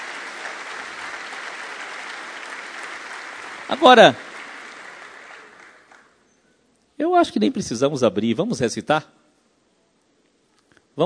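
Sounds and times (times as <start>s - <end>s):
audience applauding: 0.0s - 6.2s
speech: 3.7s - 4.2s, 7.2s - 9.2s.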